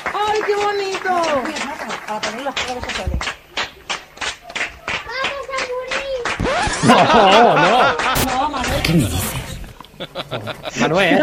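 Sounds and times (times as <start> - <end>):
steady rhythmic hand clapping for health workers: 0.0 - 8.8
speech: 0.5 - 3.4, 6.8 - 9.4, 10.0 - 11.2
laughter: 6.4 - 11.2.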